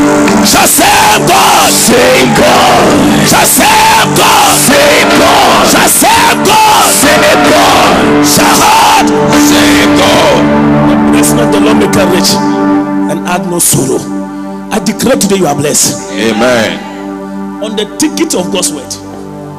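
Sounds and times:
audience clapping: 0:00.1 - 0:00.5
crowd cheering and yelling: 0:00.3 - 0:10.5, 0:16.1 - 0:17.1
speech: 0:01.9 - 0:16.9, 0:17.6 - 0:19.1.

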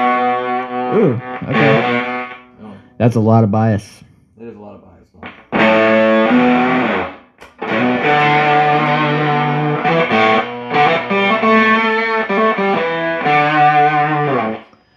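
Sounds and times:
electric guitar played through Jupiter amplifier with clean tone: 0:00.0 - 0:02.9, 0:05.2 - 0:14.9
speech: 0:00.9 - 0:02.1, 0:03.0 - 0:04.1.

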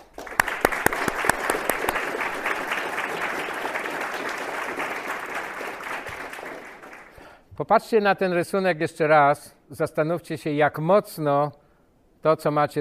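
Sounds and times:
audience applause: 0:00.0 - 0:07.3
speech: 0:07.7 - 0:11.6, 0:12.2 - 0:12.7.

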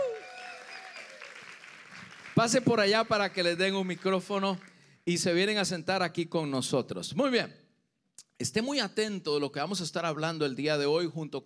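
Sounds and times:
audience applause: 0:00.0 - 0:04.8
speech: 0:02.4 - 0:07.6, 0:08.4 - 0:11.4.

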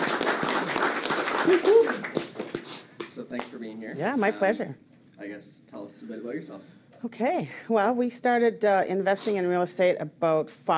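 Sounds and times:
round of applause: 0:00.0 - 0:02.6
speech: 0:01.5 - 0:02.3, 0:03.2 - 0:10.7.

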